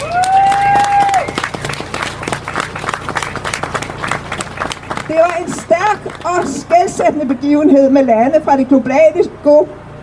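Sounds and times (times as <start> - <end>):
audience applause: 0.0 - 7.4
speech: 5.2 - 9.8.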